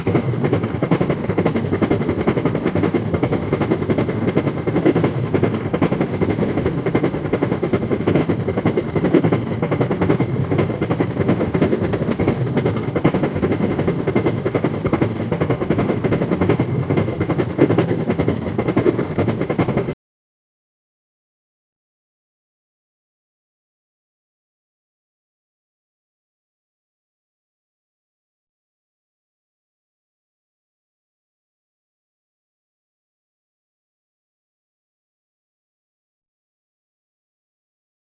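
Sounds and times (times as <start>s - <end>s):
real steam engine: 0.0s - 20.0s.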